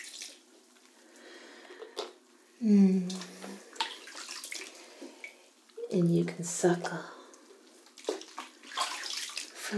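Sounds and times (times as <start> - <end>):
bath water splashing as soap is rinsed off: 0.0 - 0.8, 3.1 - 9.7
speech: 2.6 - 3.3, 6.0 - 7.2.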